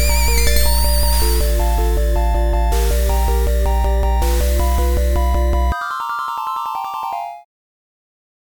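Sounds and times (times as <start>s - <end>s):
boss fight game music: 0.0s - 6.8s.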